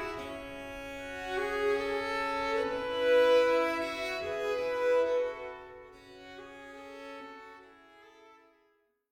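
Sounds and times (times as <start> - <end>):
pipes playing in Dorian mode: 0.0 - 5.3.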